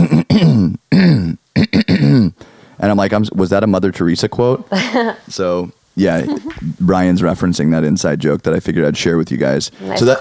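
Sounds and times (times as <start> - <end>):
person imitating excessive throat clearing: 0.0 - 2.4
speech: 2.8 - 10.1.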